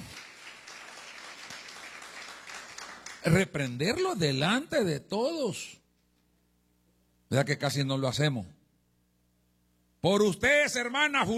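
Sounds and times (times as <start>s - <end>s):
audience applause: 0.0s - 3.4s
speech: 3.2s - 5.8s, 7.3s - 8.6s, 10.0s - 11.3s.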